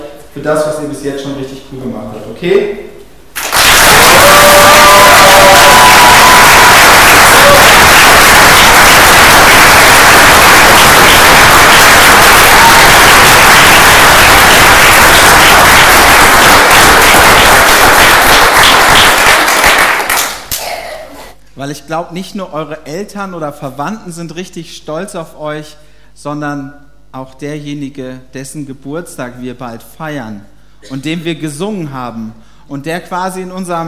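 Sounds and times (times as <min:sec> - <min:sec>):
speech: 0:00.4 - 0:03.0, 0:21.6 - 0:33.8
applause: 0:03.4 - 0:20.7.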